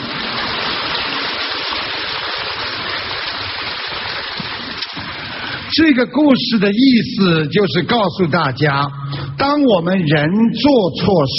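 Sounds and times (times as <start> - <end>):
crowd applause: 0.0 - 5.8
speech: 5.8 - 11.3.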